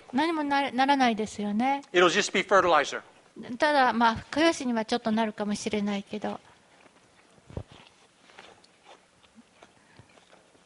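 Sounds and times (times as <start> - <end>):
speech: 0.1 - 6.5
chewing apple: 6.4 - 10.6
biting into an apple: 6.8 - 10.6.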